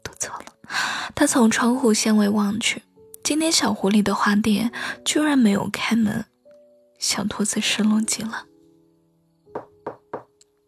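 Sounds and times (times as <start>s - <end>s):
speech: 0.7s - 6.3s, 7.0s - 8.5s
knocking on a door: 9.5s - 10.4s.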